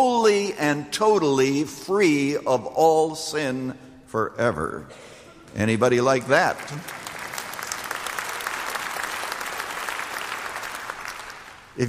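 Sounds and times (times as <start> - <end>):
speech: 0.0 - 7.0
audience clapping: 5.4 - 11.8.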